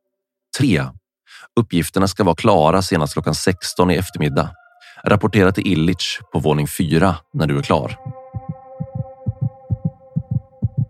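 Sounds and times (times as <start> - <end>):
speech: 0.6 - 8.2
heartbeat pounding: 7.9 - 10.8.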